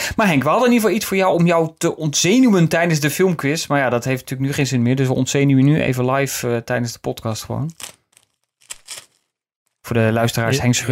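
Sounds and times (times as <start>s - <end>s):
speech: 0.2s - 8.0s, 9.9s - 10.9s
wrapped piece of paper unfolded, crinkling and rustling: 7.7s - 9.3s.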